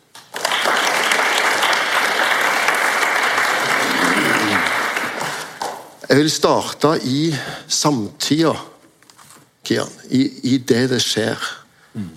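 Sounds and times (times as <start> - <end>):
audience applause: 0.2 - 5.8
speech: 6.1 - 8.7, 9.7 - 12.1.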